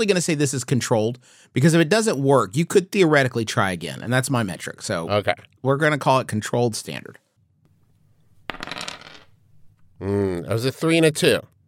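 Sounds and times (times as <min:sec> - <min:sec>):
speech: 0:00.0 - 0:07.2, 0:10.0 - 0:11.5
dice rolling on a table: 0:07.8 - 0:09.9.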